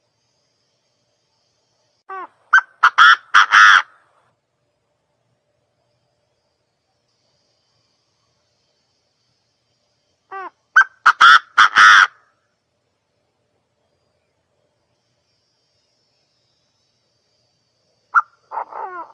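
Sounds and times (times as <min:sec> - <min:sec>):
partridge calling: 0:02.1 - 0:04.0, 0:10.3 - 0:12.2, 0:18.1 - 0:19.1.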